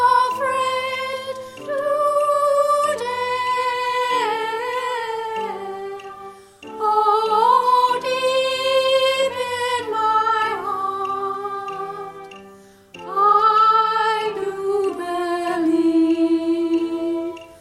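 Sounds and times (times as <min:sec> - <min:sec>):
soprano singing: 0:00.0 - 0:17.5.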